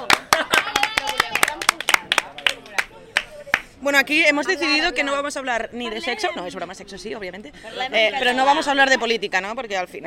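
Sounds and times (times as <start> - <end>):
applause: 0.0 - 3.7
speech: 3.9 - 10.0.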